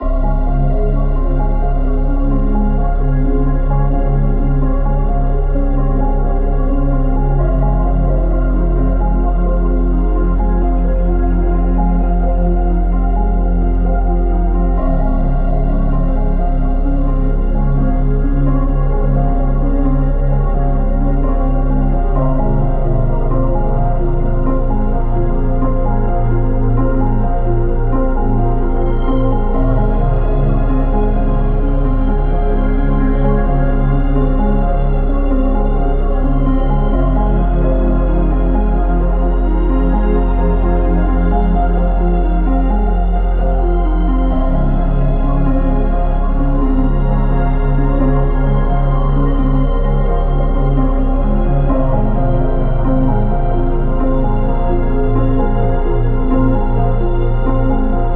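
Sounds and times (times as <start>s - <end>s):
ambient music: 0.0s - 58.1s.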